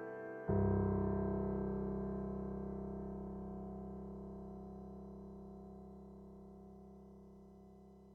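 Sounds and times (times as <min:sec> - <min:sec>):
Kurzweil stage piano grand piano sound: 0:00.0 - 0:08.1.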